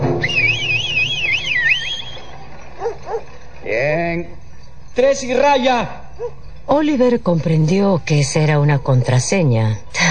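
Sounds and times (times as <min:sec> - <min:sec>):
person whistling: 0:00.2 - 0:02.3
speech: 0:05.0 - 0:10.0.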